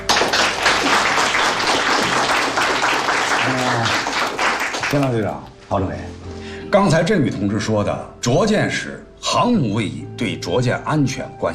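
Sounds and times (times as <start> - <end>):
loud applause for naval aviators: 0.0 - 5.2
speech: 4.9 - 11.5.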